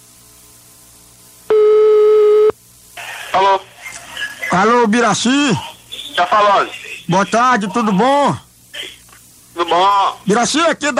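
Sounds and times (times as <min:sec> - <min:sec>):
faint hiss: 0:00.0 - 0:10.9
telephone ringing tone while placing a call: 0:01.5 - 0:02.5
speech: 0:04.5 - 0:08.4, 0:09.6 - 0:10.9.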